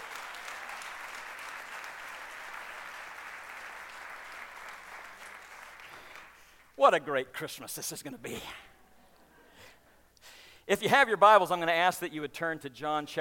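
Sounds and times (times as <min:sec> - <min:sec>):
audience applauding: 0:00.0 - 0:06.8
speech: 0:06.8 - 0:08.7, 0:10.7 - 0:13.1.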